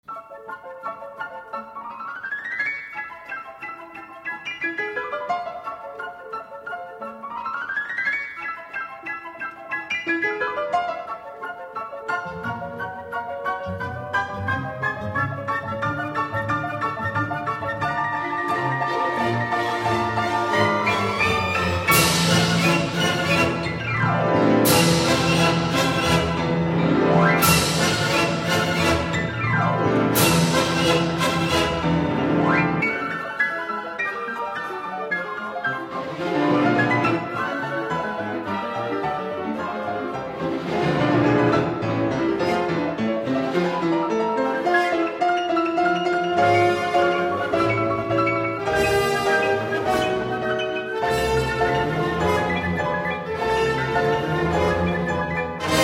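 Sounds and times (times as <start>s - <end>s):
piano concerto movement: 0.0s - 55.8s.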